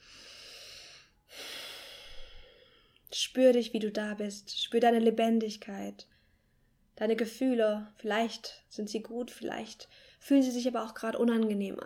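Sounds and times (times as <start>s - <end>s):
deep breathing during a guided meditation: 0.0s - 3.0s
speech: 3.3s - 6.1s, 7.0s - 11.8s.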